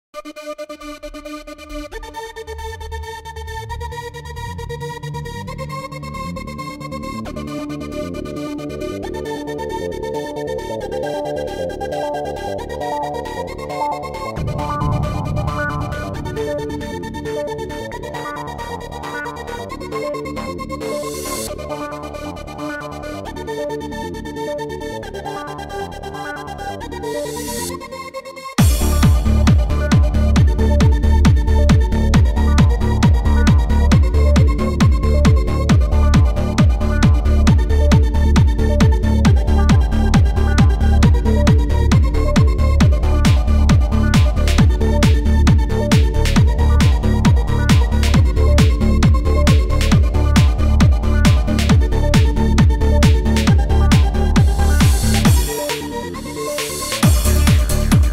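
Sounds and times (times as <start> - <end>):
dance music: 14.0 - 22.1, 28.6 - 58.1.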